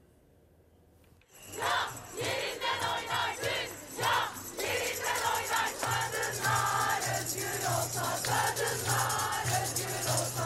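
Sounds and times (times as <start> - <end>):
women's march crowd chanting slogans in unison: 1.5 - 10.4.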